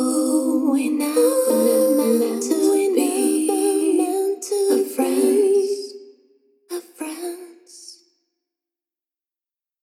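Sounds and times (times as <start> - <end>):
female vocal bus with scooped room: 0.0 - 6.0, 6.7 - 8.0.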